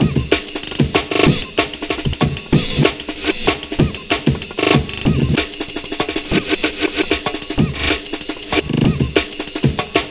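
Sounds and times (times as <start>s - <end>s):
190 BPM breakcore drum beat: 0.0s - 10.0s.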